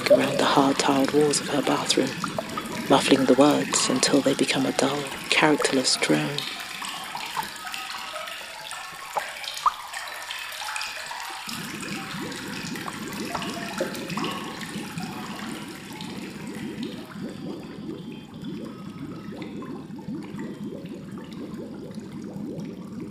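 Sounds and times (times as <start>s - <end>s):
bath water running from a tap in a tiled bathroom: 0.0s - 23.1s
speech: 0.2s - 6.6s.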